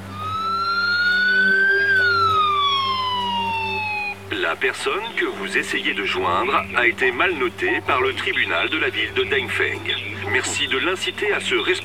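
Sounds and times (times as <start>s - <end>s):
low hum: 0.0s - 11.8s
special phone ringtone for blacklisted people: 0.1s - 4.3s
speech: 4.5s - 11.8s.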